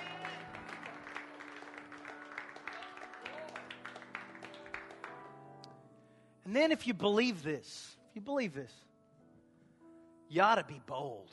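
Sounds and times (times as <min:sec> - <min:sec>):
audience clapping hands: 0:00.0 - 0:05.5
speech: 0:06.5 - 0:08.9, 0:10.3 - 0:11.3.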